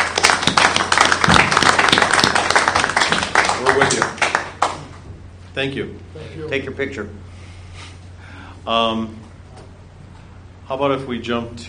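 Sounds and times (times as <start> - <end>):
applause: 0.0 - 5.0
speech: 5.6 - 7.3, 8.7 - 9.3, 10.7 - 11.6.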